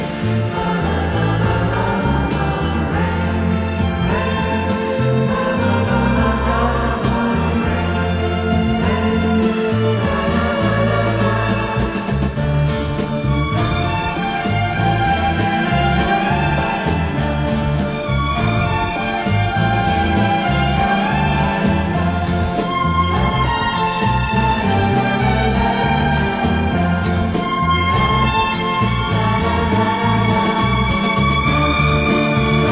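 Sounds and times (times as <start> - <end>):
instrumental music: 0.0 - 32.7.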